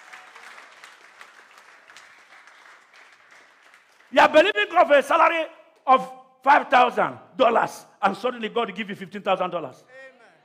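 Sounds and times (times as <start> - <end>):
audience clapping: 0.0 - 4.6
speech: 4.1 - 10.1.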